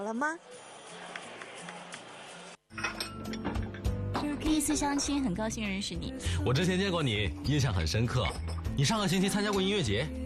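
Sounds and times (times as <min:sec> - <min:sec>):
speech: 0:00.1 - 0:01.1, 0:04.5 - 0:10.2
glasses clinking: 0:02.7 - 0:05.2, 0:07.6 - 0:09.9.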